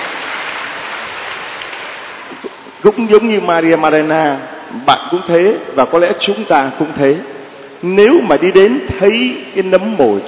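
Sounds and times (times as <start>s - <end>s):
audience applause: 0.0s - 2.4s
speech: 2.8s - 10.2s.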